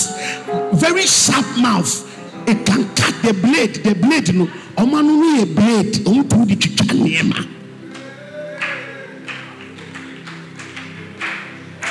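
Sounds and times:
speech: 0.5s - 7.6s
audience clapping: 7.8s - 11.9s.

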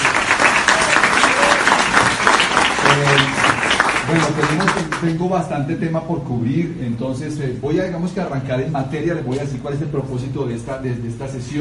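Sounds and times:
audience applause: 0.0s - 5.2s
speech: 4.1s - 11.5s.

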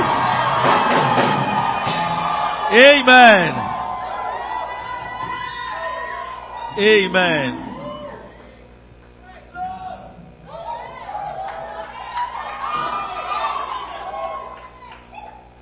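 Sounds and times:
audience joyful shouting and cheering: 0.0s - 8.5s, 9.6s - 15.5s
speech: 2.7s - 3.6s, 6.8s - 7.6s.

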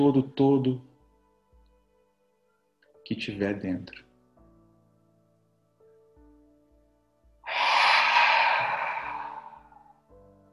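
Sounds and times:
speech: 0.0s - 0.9s, 3.1s - 4.0s
deep exhale with the belly pulled in to push out all the air: 7.5s - 10.0s.

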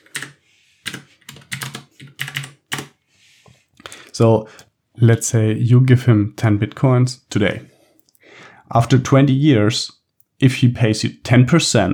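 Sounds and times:
typing on a computer keyboard: 0.0s - 2.9s
speech: 4.2s - 7.7s, 8.7s - 11.9s.

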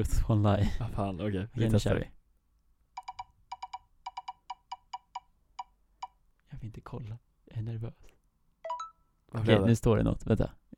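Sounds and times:
speech: 0.0s - 2.2s, 6.6s - 8.1s, 9.3s - 10.7s
digital spinning wheel ticking: 3.0s - 6.2s.

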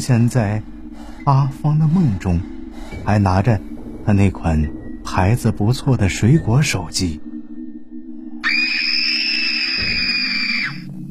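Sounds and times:
speech: 0.0s - 7.3s
woman screaming: 8.4s - 10.8s.

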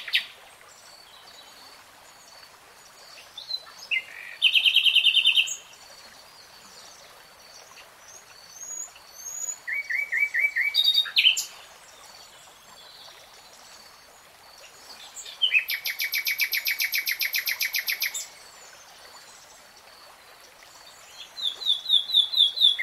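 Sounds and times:
nightingale song: 3.0s - 13.8s, 14.6s - 19.6s, 20.8s - 22.8s.

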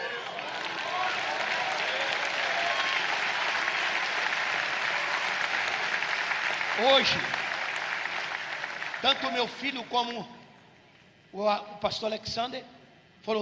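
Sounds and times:
audience applauding: 0.0s - 10.1s
speech: 6.8s - 7.4s, 9.0s - 10.4s, 11.3s - 13.3s.

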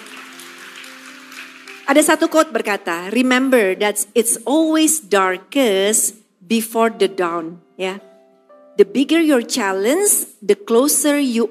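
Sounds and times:
crowd clapping: 0.0s - 2.6s
speech: 1.9s - 8.1s, 8.8s - 11.4s.

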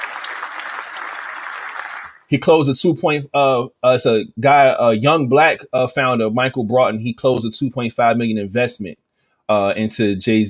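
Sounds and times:
crowd applause: 0.0s - 2.3s
speech: 2.3s - 10.4s.

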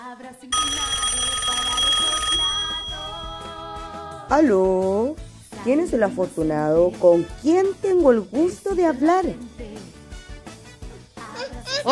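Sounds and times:
speech: 0.2s - 1.2s, 4.3s - 9.6s
telephone ringing for incoming call: 0.5s - 4.1s.

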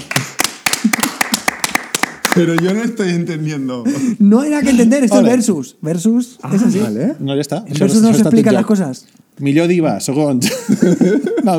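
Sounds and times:
applause: 0.0s - 2.8s
speech: 2.4s - 11.5s
laughter: 10.4s - 11.5s.

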